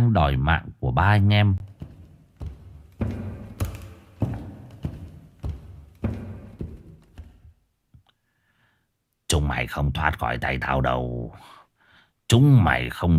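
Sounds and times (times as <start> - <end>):
speech: 0.1 - 1.7, 9.5 - 11.6, 12.3 - 13.1
clattering footsteps in a house: 1.6 - 7.6.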